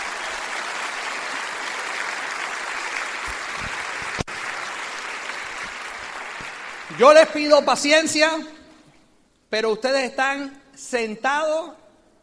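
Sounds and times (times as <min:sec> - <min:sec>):
audience applause: 0:00.0 - 0:07.0
speech: 0:07.0 - 0:08.6, 0:09.5 - 0:11.8.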